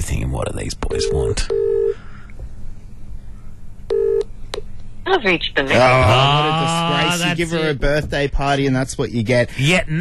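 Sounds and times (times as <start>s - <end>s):
speech: 0.3s - 1.7s, 5.1s - 9.9s
phone dialing a call: 1.0s - 2.0s.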